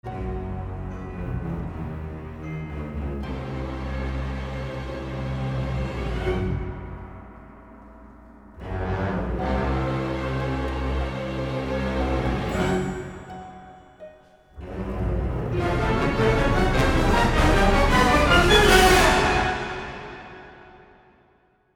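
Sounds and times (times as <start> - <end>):
tense music: 0.0 - 21.4.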